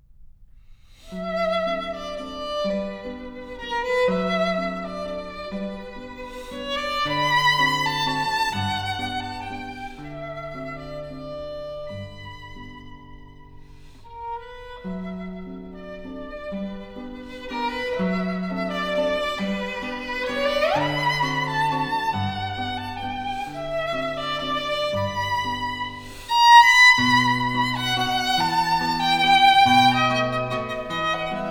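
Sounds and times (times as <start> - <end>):
piano waltz: 1.2 - 31.4.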